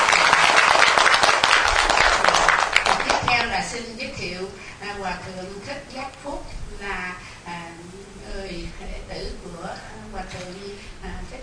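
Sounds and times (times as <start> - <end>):
audience applause at a Buddhist ceremony: 0.0 - 3.6
speech: 5.0 - 7.6.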